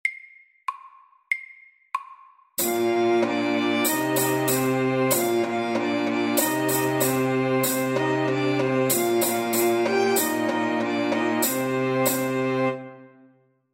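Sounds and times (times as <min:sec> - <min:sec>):
slow folk dance music: 0:02.6 - 0:13.1.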